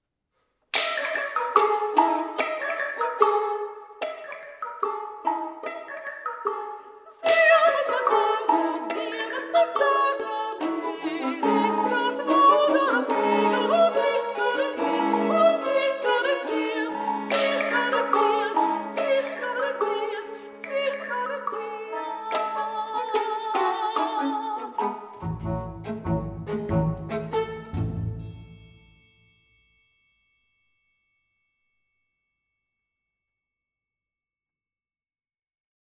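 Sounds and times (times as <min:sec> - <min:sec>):
fast lively instrumental piece: 0:00.8 - 0:28.4.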